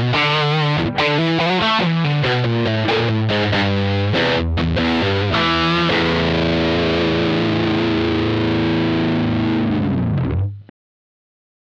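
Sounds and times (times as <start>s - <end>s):
guitar through a Way Huge Green Rhino MkV overdrive: 0.0s - 10.7s.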